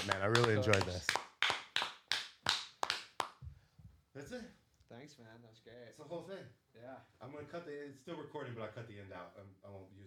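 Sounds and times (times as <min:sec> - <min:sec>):
speech: 0:00.0 - 0:01.2, 0:04.2 - 0:10.0
people clapping: 0:00.0 - 0:03.5.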